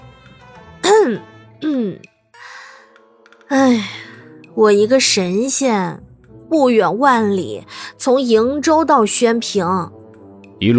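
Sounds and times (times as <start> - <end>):
person clearing throat: 0.8 - 2.1
speech: 1.0 - 2.1, 3.5 - 10.0, 10.6 - 10.7.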